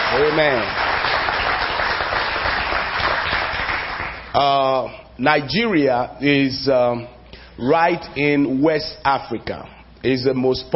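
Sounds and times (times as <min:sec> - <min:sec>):
round of applause: 0:00.0 - 0:04.4
speech: 0:00.1 - 0:00.8, 0:04.4 - 0:10.7.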